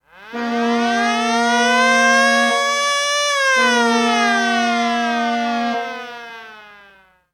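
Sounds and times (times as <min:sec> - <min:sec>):
hockey goal horn: 0:00.2 - 0:06.4
hockey buzzer: 0:00.3 - 0:06.2.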